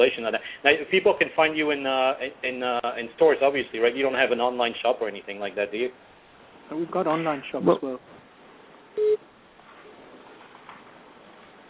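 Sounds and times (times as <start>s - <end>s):
speech: 0.0s - 6.1s, 6.7s - 8.2s, 9.0s - 9.3s
faint hiss of a phone line: 9.0s - 9.2s
short electronic beep on a phone line: 9.0s - 9.2s.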